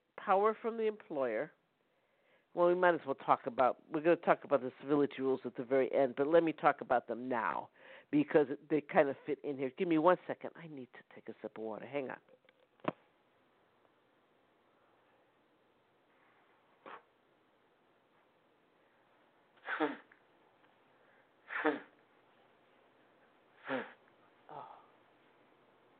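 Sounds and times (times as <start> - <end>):
speech: 0.3 - 1.6, 2.6 - 13.0
nose blowing: 16.7 - 17.2, 19.6 - 20.2, 21.4 - 22.0, 23.6 - 24.1.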